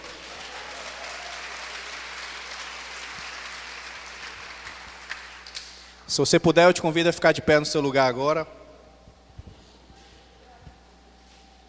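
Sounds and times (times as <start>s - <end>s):
audience applause: 0.0s - 5.6s
speech: 6.1s - 8.6s.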